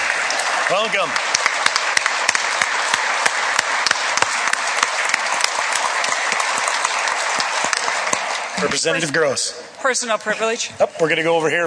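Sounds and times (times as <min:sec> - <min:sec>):
audience applause: 0:00.0 - 0:09.1
speech: 0:00.7 - 0:01.3, 0:08.6 - 0:11.6.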